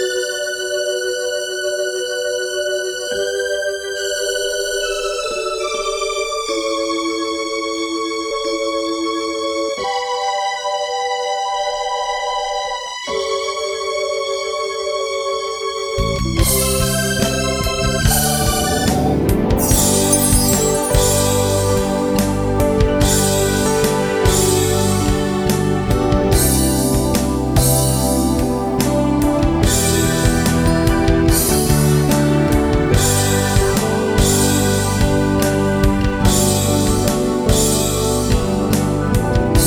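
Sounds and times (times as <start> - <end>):
ambient keyboard melody: 0.0 - 39.6.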